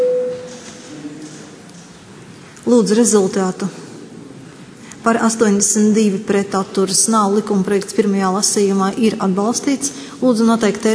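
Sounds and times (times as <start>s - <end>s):
parliamentary voting-mode electronic signal tone: 0.0s - 0.6s
speech: 2.7s - 3.8s, 5.0s - 10.9s.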